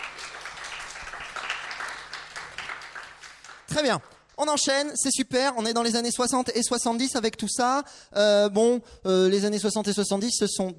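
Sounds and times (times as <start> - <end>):
room full of people applauding: 0.0 - 4.4
speech: 3.8 - 10.7.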